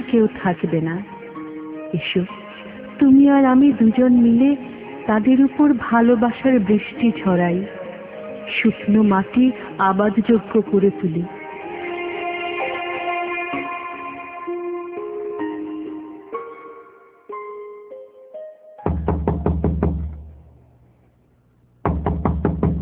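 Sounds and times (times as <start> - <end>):
sustained musical tones: 0.0 - 19.1
speech: 0.1 - 1.1, 1.9 - 2.4, 3.0 - 7.8, 8.5 - 11.4
knocking on a door in a Bengali drama scene: 18.9 - 20.2, 21.9 - 22.8.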